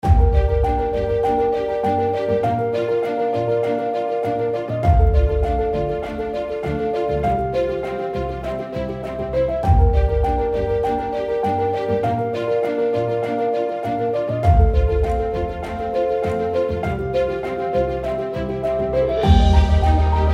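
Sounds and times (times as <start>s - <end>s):
cinematic background music: 0.0s - 20.3s.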